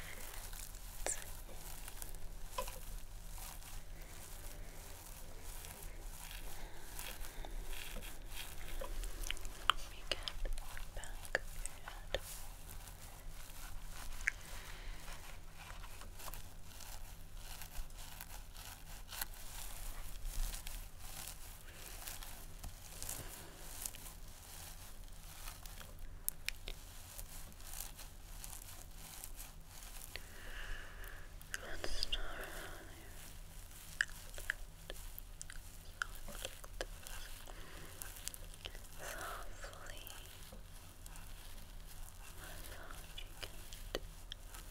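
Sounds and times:
head massage and hair brushing: 0.0 - 44.6.

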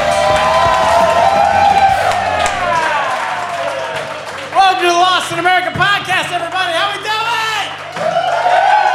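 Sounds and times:
comedy club audience at Stand Up NY cheering and whooping: 0.0 - 4.6, 7.8 - 8.9
comedy club audience at Stand Up NY clapping to welcome a comedian: 0.0 - 8.9.

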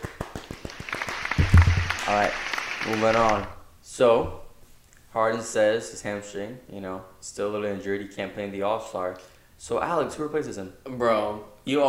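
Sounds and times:
round of applause: 0.0 - 3.5
speech: 2.1 - 4.4, 5.2 - 11.8.

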